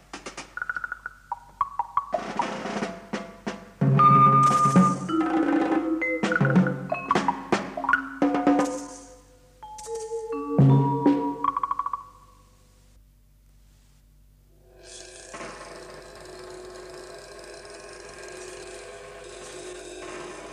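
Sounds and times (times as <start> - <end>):
percussion music: 0.0 - 12.1.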